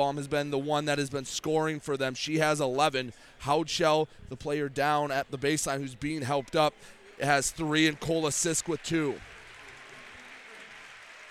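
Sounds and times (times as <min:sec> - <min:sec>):
speech: 0:00.0 - 0:09.4
basketball game crowd applause: 0:07.1 - 0:11.2.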